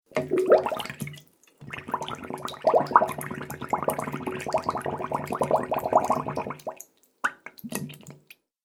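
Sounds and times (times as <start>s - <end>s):
water bubbling: 0.1s - 6.8s.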